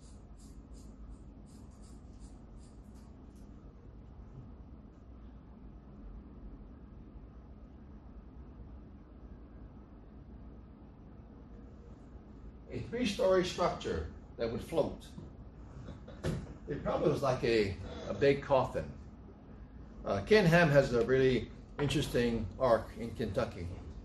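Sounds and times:
drawing tool scratching while drawing a picture by hand: 0.0s - 3.4s
speech: 12.8s - 15.2s, 16.7s - 19.0s, 20.1s - 23.8s.

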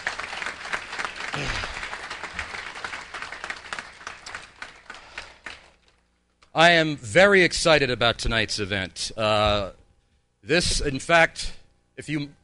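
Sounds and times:
crowd applauding: 0.0s - 6.0s
speech: 6.6s - 9.8s, 10.4s - 12.4s.

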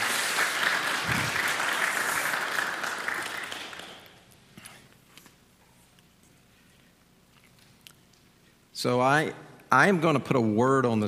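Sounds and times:
congregation applause at a church service: 0.0s - 4.2s
speech: 8.8s - 11.0s.

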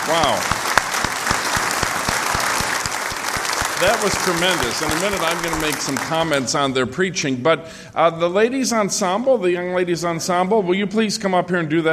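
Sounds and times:
audience applause at a church service: 0.0s - 6.6s
speech: 0.1s - 0.6s, 3.8s - 11.9s.

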